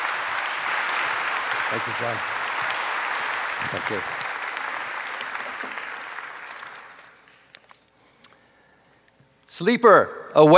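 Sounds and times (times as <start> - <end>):
audience applause welcoming a speaker: 0.0 - 7.3
speech: 1.7 - 2.4, 3.6 - 4.2, 9.6 - 10.5.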